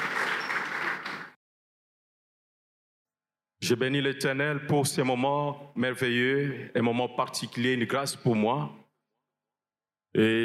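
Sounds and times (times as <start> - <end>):
church congregation clapping: 0.0 - 1.4
speech: 3.6 - 8.8, 10.1 - 10.4.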